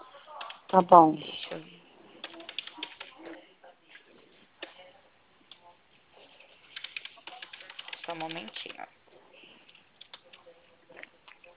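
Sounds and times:
speech: 0.7s - 1.7s
typing on a computer keyboard while writing a loan proposal: 2.2s - 3.2s, 6.6s - 8.8s.

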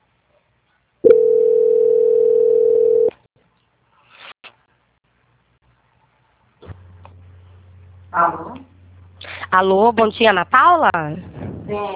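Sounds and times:
long steady telephone beeps during a call transfer: 1.1s - 3.1s
speech: 9.5s - 11.9s.

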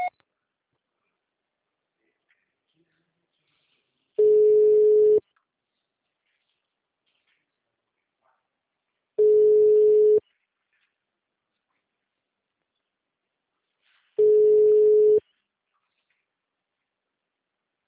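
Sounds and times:
telephone signal tone after recorded message: 4.2s - 5.2s, 9.2s - 10.2s, 14.2s - 15.2s.

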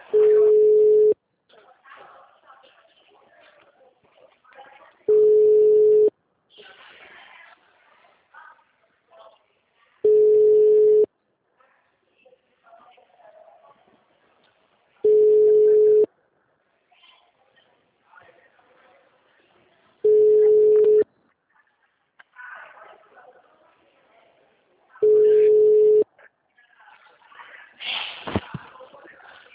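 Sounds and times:
faint murmuring voices: 0.0s - 29.5s
phone ringback tone while calling a cellphone: 0.1s - 1.2s, 5.1s - 6.1s, 10.1s - 11.1s, 15.0s - 16.1s, 20.1s - 21.0s, 25.0s - 26.0s.

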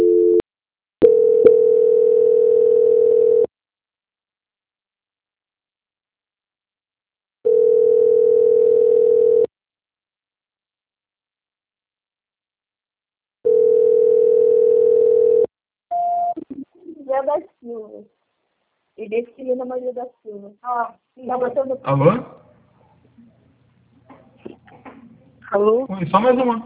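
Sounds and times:
telephone call transfer tone: 0.0s - 0.4s, 1.0s - 3.5s, 7.5s - 9.5s, 13.5s - 16.4s
speech: 19.1s - 22.4s, 25.5s - 26.6s.

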